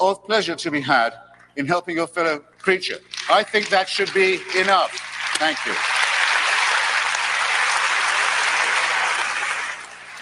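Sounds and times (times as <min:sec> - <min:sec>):
speech: 0:00.0 - 0:06.0
audience applause after a debate speech: 0:03.2 - 0:10.2.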